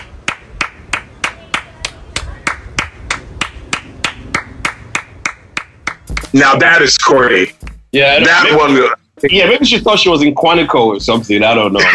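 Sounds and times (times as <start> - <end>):
clapping sound effect: 0.0 - 6.3, 7.6 - 7.8
speech: 6.3 - 11.9.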